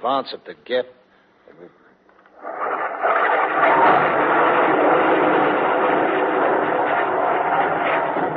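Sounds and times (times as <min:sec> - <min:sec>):
speech: 0:00.0 - 0:01.8
Australian artillery shells screaming over the ridge: 0:02.4 - 0:08.3.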